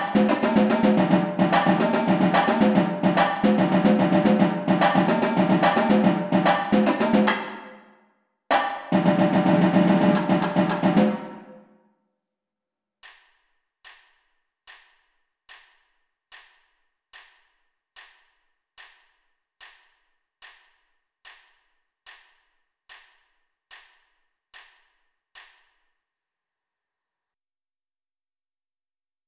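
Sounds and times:
tenor drums: 0:00.0 - 0:07.8, 0:08.5 - 0:11.6.

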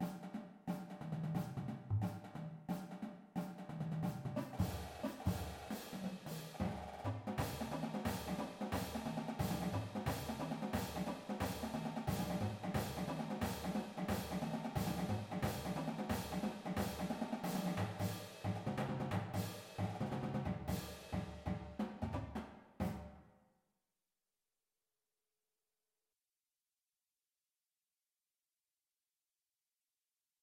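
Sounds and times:
full drumline playing: 0:00.0 - 0:23.1.

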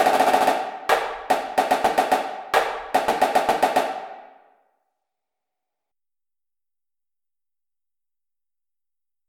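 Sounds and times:
snare drum: 0:00.0 - 0:04.3.

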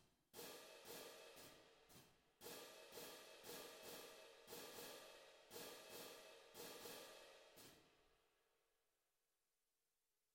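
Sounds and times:
cadence cymbals: 0:00.4 - 0:07.9.

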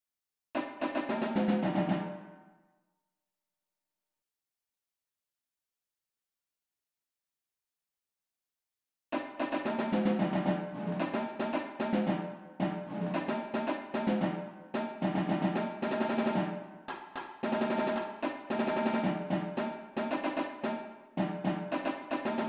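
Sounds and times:
tenor drums: 0:00.6 - 0:02.3, 0:09.2 - 0:22.4
drumline: 0:09.4 - 0:16.6, 0:17.4 - 0:22.4.

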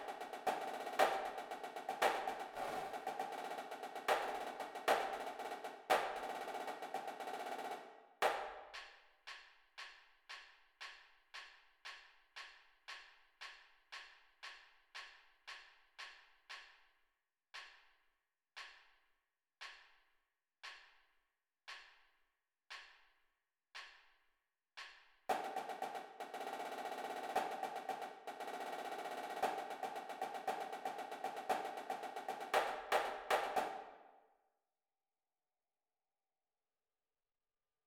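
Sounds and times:
drumline snare drum: 0:00.0 - 0:08.9, 0:25.3 - 0:34.0.

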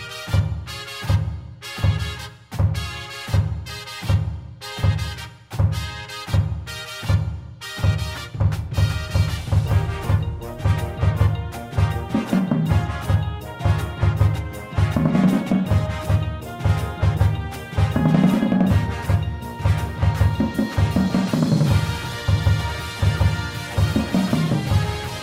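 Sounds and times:
drumline playing: 0:00.0 - 0:25.2
bass with music: 0:08.6 - 0:25.2.

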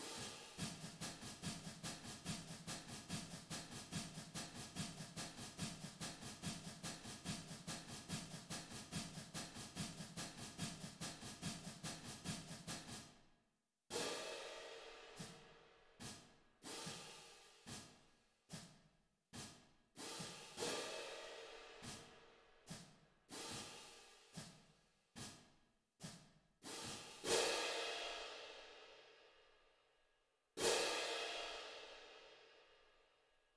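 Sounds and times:
cymbals: 0:00.0 - 0:13.1, 0:13.9 - 0:18.7, 0:20.0 - 0:24.6, 0:26.7 - 0:29.1, 0:30.6 - 0:32.5.

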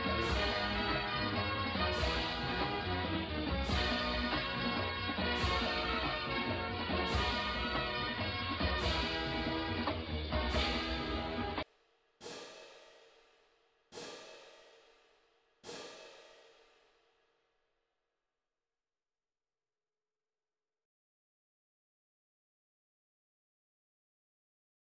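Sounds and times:
cymbals: 0:00.0 - 0:11.6, 0:12.2 - 0:16.9
drumline playing: 0:00.0 - 0:11.6.

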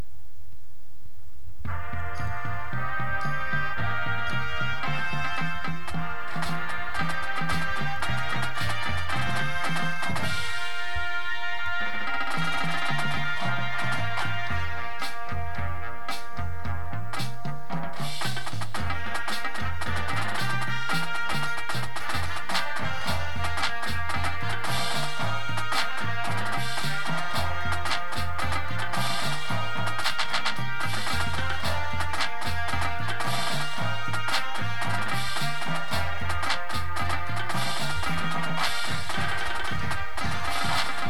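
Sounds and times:
full drumline: 0:01.6 - 0:41.0
music: 0:01.6 - 0:41.0.

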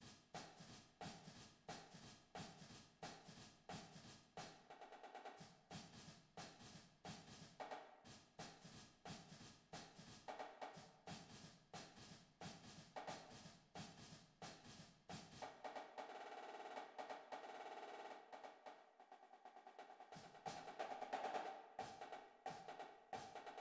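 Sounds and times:
snare drum: 0:00.0 - 0:23.5.

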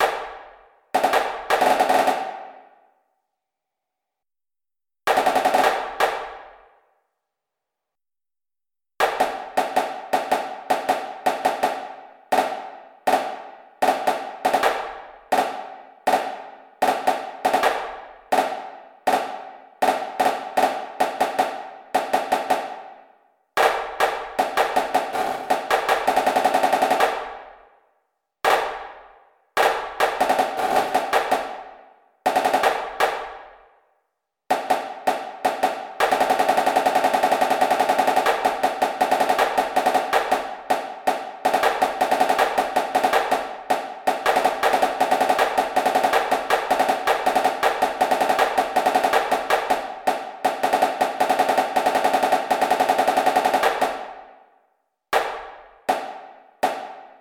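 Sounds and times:
snare drum: 0:00.0 - 0:02.7, 0:05.1 - 0:06.8, 0:09.0 - 0:27.5, 0:28.5 - 0:29.0, 0:29.6 - 0:33.8, 0:34.5 - 0:54.3, 0:55.2 - 0:57.2.

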